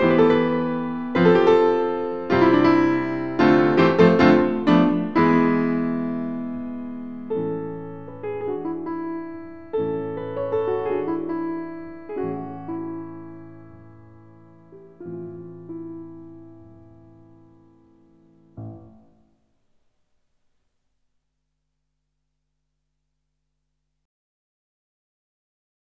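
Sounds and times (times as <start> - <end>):
piano: 0.0 - 19.9.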